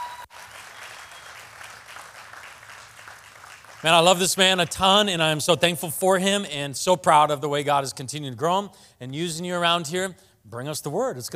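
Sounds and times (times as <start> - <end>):
congregation applause welcoming a preacher during a church service: 0.0 - 5.1
speech: 3.8 - 11.3.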